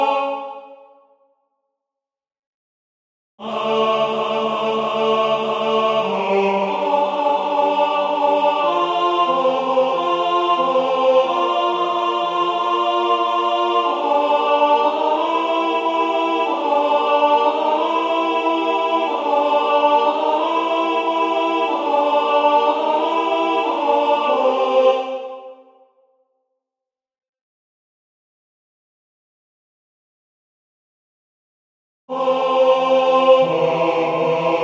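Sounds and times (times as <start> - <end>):
tenor singing: 3.4 - 25.6, 32.1 - 34.6.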